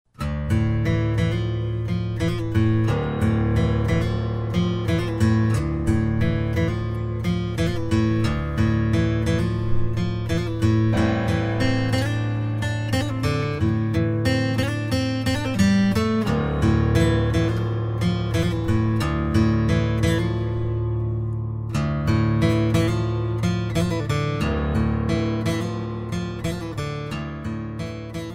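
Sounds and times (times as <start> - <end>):
guitar: 0.0 - 28.3.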